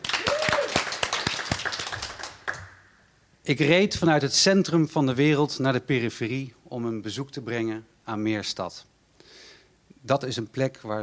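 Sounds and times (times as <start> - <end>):
applause from small group: 0.0 - 2.8
person whooping: 0.1 - 1.0
speech: 3.5 - 8.9, 10.0 - 11.0.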